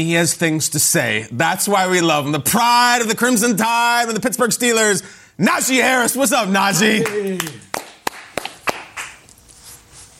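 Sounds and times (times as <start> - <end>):
speech: 0.0 - 7.6
person clapping hands: 7.0 - 9.3.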